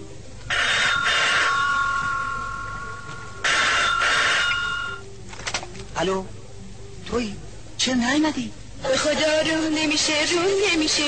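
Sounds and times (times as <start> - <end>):
telephone bell ringing: 0.5 - 2.6, 3.4 - 5.0
speech: 6.0 - 6.4, 7.1 - 11.0.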